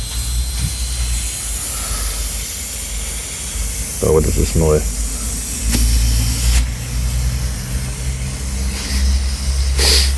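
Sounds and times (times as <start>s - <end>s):
water hissing out of a pipe: 0.0s - 10.1s
speech: 4.0s - 5.0s.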